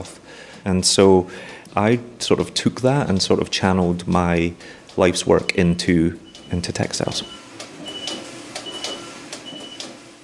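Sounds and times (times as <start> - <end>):
speech: 0.0 - 7.4
knitting machine alarm signalling knitting finished: 5.4 - 10.2.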